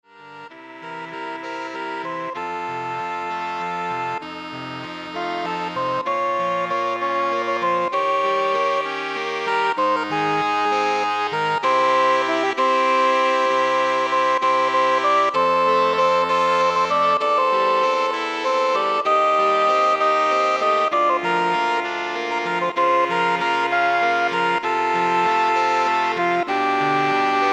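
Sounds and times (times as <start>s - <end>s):
saxophone ensemble: 0.1s - 27.5s.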